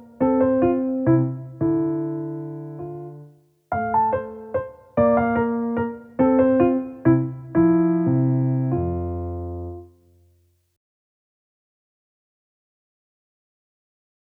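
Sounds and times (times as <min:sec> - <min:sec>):
piano minuet in F major: 0:00.0 - 0:10.4.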